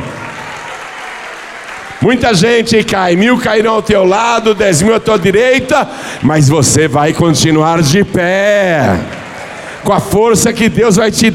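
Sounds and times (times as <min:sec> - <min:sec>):
audience applauding: 0:00.0 - 0:10.4
speech: 0:02.0 - 0:09.2, 0:09.8 - 0:11.3.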